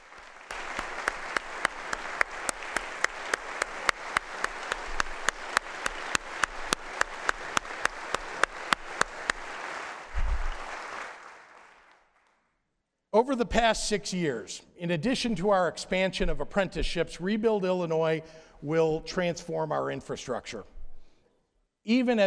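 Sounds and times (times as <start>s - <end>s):
crowd applause: 0.0s - 12.4s
speech: 13.2s - 20.7s, 21.8s - 22.2s.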